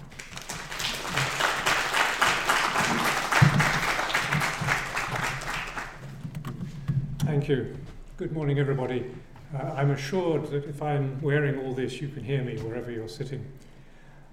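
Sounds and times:
audience applause welcoming a speaker at a morning talk: 0.0 - 6.1
speech: 7.4 - 13.6.

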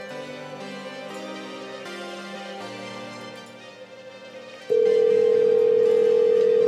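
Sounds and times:
telephone dialing tone while a number is being called: 4.7 - 6.6.

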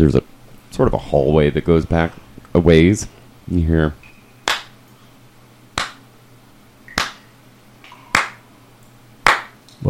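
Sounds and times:
speech: 0.0 - 4.0
slow isolated claps from a single pair of hands: 4.5 - 4.7, 5.8 - 6.0, 6.9 - 7.2, 8.1 - 8.4, 9.2 - 9.6.

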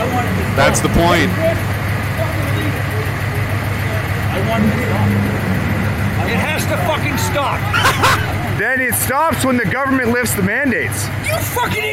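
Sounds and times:
diesel engine running: 0.0 - 11.9
speech: 0.6 - 1.7, 4.4 - 5.2, 6.3 - 11.9.

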